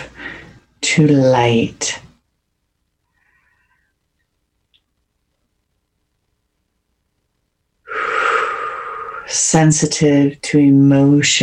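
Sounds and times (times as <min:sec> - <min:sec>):
deep breath: 0:00.0 - 0:00.7, 0:03.1 - 0:04.0, 0:07.8 - 0:09.4
speech: 0:01.0 - 0:02.0, 0:09.5 - 0:11.4.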